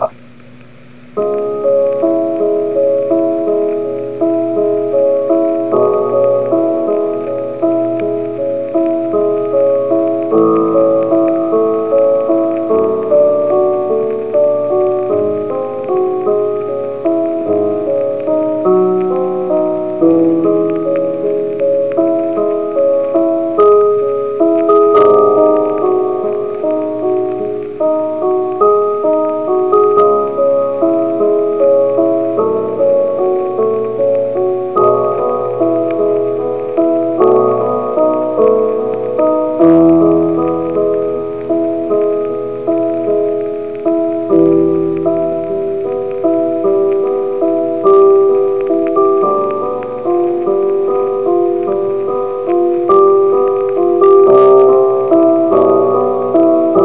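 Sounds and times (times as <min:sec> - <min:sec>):
piano sonata in C-sharp minor: 0:00.0 - 0:56.8.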